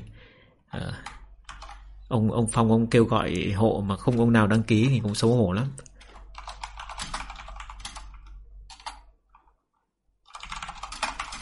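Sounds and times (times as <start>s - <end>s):
computer keyboard typing: 0.9s - 2.0s, 4.0s - 9.6s, 10.2s - 11.3s
speech: 2.1s - 5.9s.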